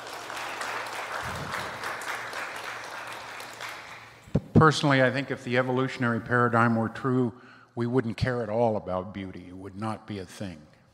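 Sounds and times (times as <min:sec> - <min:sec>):
audience applause: 0:00.0 - 0:04.2
speech: 0:04.6 - 0:10.7.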